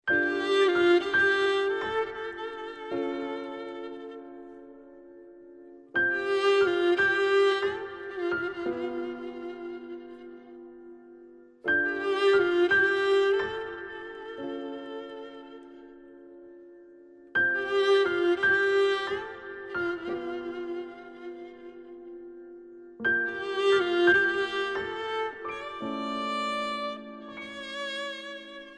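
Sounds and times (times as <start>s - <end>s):
violin: 0.0s - 28.7s.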